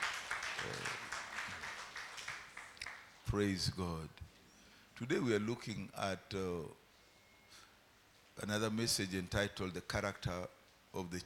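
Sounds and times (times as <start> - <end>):
crowd clapping for the choir: 0.0 - 3.1
speech: 3.3 - 4.3, 5.0 - 6.8, 8.4 - 11.2.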